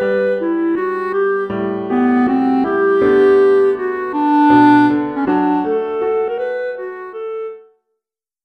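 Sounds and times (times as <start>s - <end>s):
solo B-flat clarinet through a PA: 0.0s - 7.9s.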